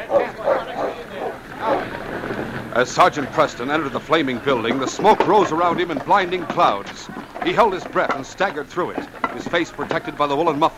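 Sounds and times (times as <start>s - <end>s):
dog barking and yipping in a radio drama: 0.0s - 7.9s
laughter: 0.0s - 10.7s
speech: 2.8s - 10.7s.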